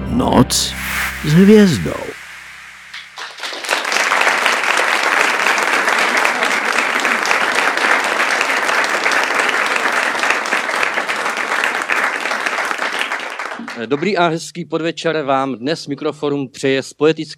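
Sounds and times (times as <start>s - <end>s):
speech: 0.2s - 2.2s, 13.9s - 17.3s
audience applause: 3.2s - 13.8s.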